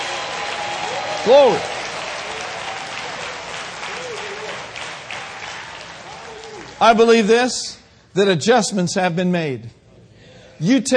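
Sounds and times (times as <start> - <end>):
crowd applause: 0.0 - 7.0
speech: 1.2 - 1.8, 6.8 - 9.8, 10.6 - 10.9.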